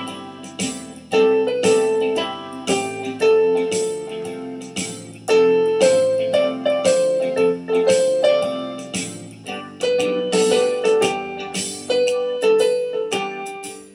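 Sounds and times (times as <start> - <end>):
slow song: 0.0 - 13.9.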